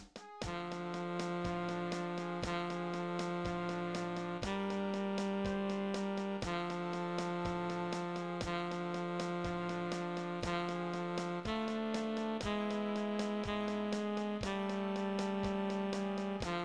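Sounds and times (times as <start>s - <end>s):
tenor saxophone: 0.2s - 16.6s.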